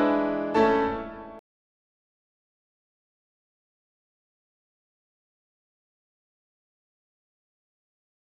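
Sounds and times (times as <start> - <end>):
piano: 0.0 - 1.4.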